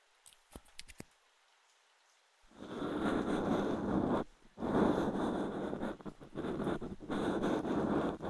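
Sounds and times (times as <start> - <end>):
left ear cleaning: 0.3 - 1.0, 2.5 - 8.2.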